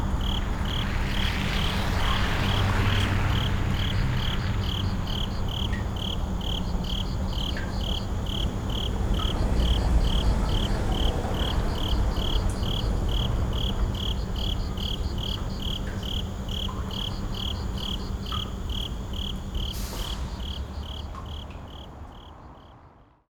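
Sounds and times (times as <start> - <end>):
urban and suburban ambience: 0.0 - 23.3.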